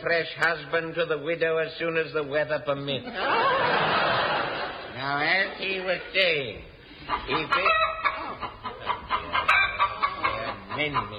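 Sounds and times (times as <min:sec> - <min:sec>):
speech: 0:00.0 - 0:07.8, 0:10.8 - 0:11.1
laughter: 0:03.0 - 0:11.1
hen clucking: 0:06.9 - 0:11.1.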